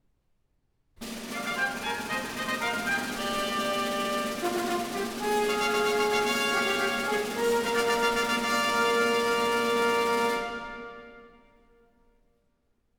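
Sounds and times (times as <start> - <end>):
fanfare: 1.0 - 11.4.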